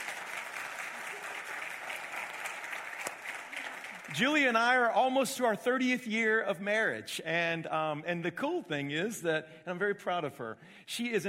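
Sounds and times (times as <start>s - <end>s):
audience applause welcoming the speaker's wife: 0.0s - 4.5s
speech: 4.1s - 11.2s.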